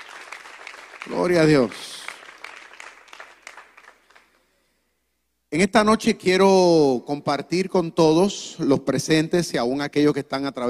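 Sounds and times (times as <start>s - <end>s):
audience applause: 0.0s - 4.4s
speech: 1.0s - 1.9s, 5.5s - 10.6s.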